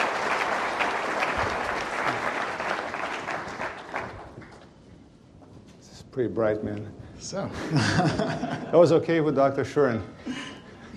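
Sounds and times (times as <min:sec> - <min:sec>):
audience applause: 0:00.0 - 0:04.6
speech: 0:06.2 - 0:10.4
laughter: 0:07.5 - 0:09.0.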